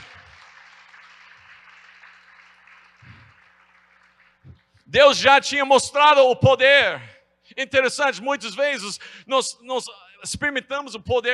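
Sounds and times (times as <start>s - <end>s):
audience applause: 0.0s - 4.7s
speech: 4.9s - 11.3s.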